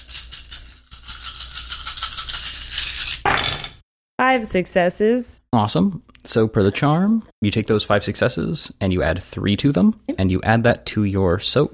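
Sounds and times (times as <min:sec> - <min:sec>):
handful of dice rolling: 0:00.0 - 0:03.8
speech: 0:04.4 - 0:11.7.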